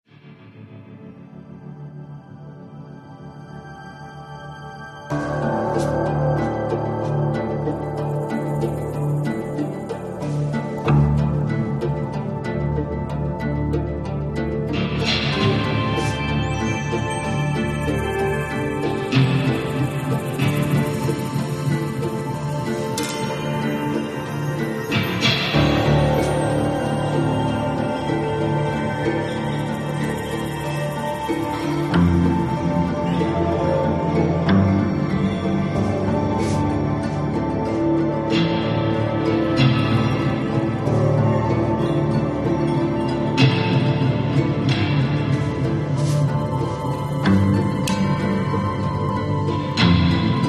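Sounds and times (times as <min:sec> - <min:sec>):
ambient loop: 0:01.5 - 0:50.4.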